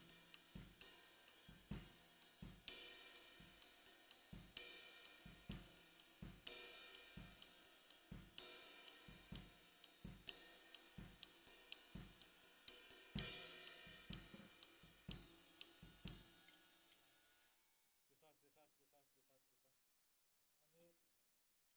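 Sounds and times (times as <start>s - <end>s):
snare drum: 0.0s - 16.8s.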